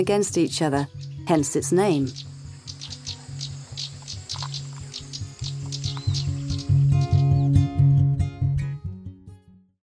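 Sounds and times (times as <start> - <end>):
stonechat calling: 0.1 - 7.5.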